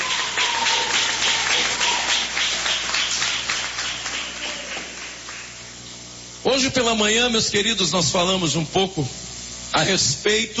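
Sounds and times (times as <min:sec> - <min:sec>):
audience clapping hands: 0:00.0 - 0:05.8
speech: 0:06.6 - 0:09.2, 0:09.8 - 0:10.5.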